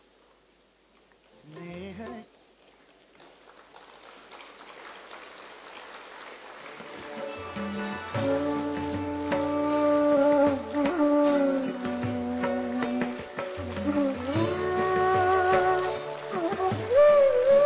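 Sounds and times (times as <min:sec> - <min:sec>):
audience applause welcoming a guest: 0:02.9 - 0:12.1, 0:12.8 - 0:17.6.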